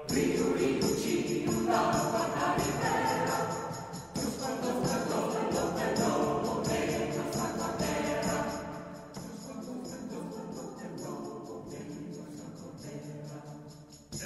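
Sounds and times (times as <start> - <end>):
song: 0.1 - 12.7.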